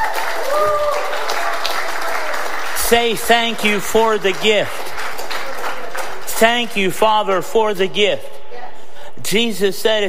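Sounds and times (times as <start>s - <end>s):
audience clapping: 0.0s - 7.0s
speech: 2.9s - 4.8s, 6.4s - 8.3s, 9.2s - 10.0s.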